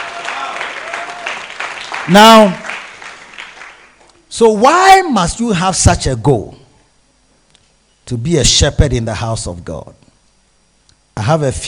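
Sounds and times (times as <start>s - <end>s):
crowd clapping: 0.0s - 4.2s
speech: 2.1s - 2.6s, 4.3s - 6.6s, 8.1s - 10.0s, 11.2s - 11.6s.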